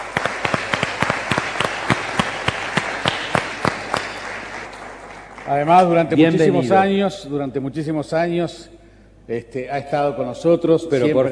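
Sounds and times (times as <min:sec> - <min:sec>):
audience applause: 0:00.0 - 0:06.4
speech: 0:05.5 - 0:11.3.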